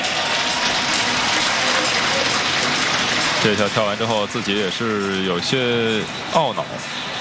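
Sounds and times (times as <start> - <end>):
audience applause: 0.0 - 5.4
speech: 3.4 - 7.1.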